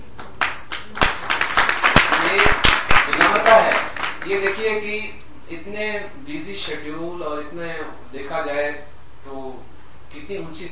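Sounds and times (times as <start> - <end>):
hand claps starting a chant: 0.2 - 4.6
speech: 4.2 - 10.7.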